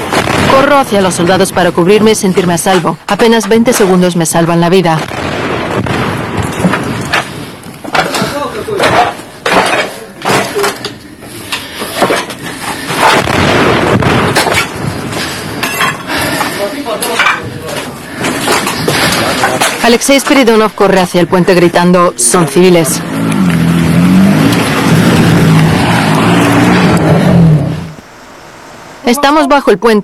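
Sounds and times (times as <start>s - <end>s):
artillery shell exploding: 0.0s - 29.2s
speech: 0.6s - 6.0s, 19.9s - 23.5s, 29.0s - 30.0s.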